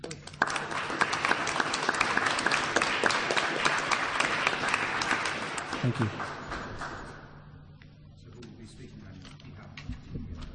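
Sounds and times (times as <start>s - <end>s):
audience applauding: 0.1s - 7.4s
speech: 5.8s - 6.3s.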